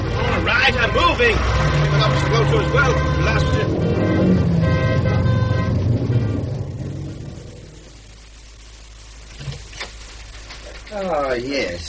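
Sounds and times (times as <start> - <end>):
heavy street traffic: 0.0 - 11.8
car horns: 0.3 - 7.6
speech: 0.6 - 4.5, 10.9 - 11.8.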